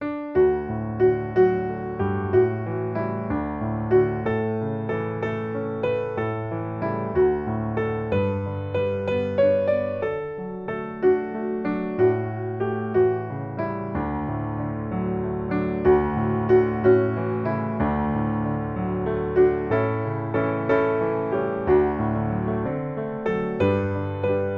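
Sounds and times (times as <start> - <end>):
piano: 0.0 - 24.5.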